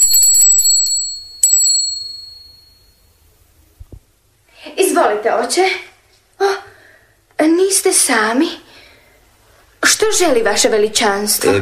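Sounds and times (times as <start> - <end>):
small hand bell ringing: 0.0 - 3.1
speech: 4.8 - 6.6, 7.5 - 8.6, 9.9 - 11.6.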